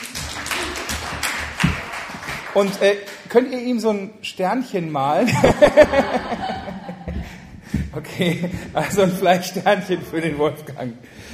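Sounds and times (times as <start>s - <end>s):
audience applause: 0.0s - 3.0s
speech: 2.6s - 6.6s, 8.0s - 11.3s
laughter: 5.3s - 9.2s.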